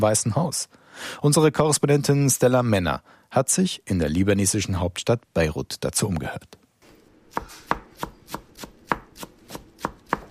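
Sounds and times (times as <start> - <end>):
speech: 0.0 - 6.6
chef chopping herbs with a knife on a board in a Beirut restaurant kitchen: 7.3 - 10.2.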